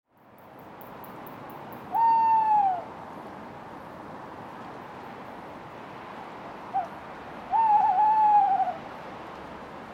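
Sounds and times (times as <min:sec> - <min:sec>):
male tawny owl hooting: 0:01.9 - 0:02.9, 0:07.5 - 0:08.8.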